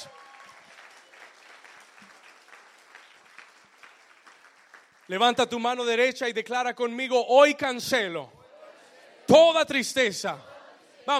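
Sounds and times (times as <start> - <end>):
crowd clapping: 0.0 - 5.9
speech: 5.1 - 8.4, 9.3 - 10.5.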